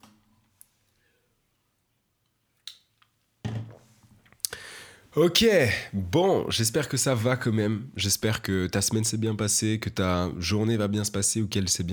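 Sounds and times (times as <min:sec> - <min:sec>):
person sipping a glass of tap water: 0:04.4 - 0:04.9
speech: 0:05.2 - 0:11.9.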